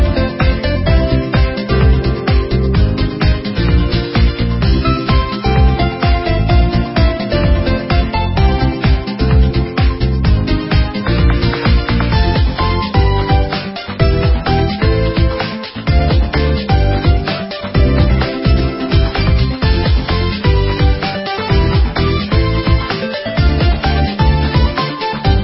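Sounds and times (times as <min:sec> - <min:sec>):
easy run soundtrack music: 0:00.0 - 0:25.4.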